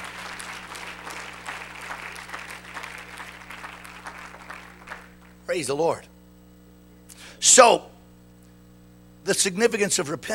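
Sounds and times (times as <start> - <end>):
audience applause: 0.0 - 5.4
speech: 5.5 - 6.1, 7.4 - 7.9, 9.3 - 10.3.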